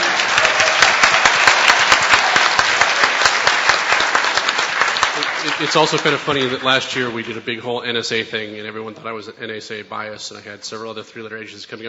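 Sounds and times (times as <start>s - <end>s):
crowd applauding: 0.0s - 7.5s
speech: 5.6s - 11.8s.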